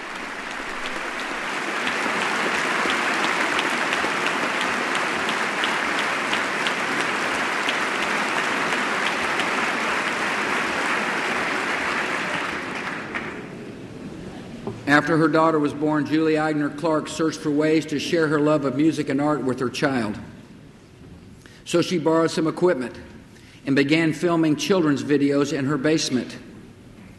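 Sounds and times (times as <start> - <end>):
hearty round of applause in a chamber: 0.0 - 13.7
speech: 15.0 - 20.3, 21.7 - 26.4.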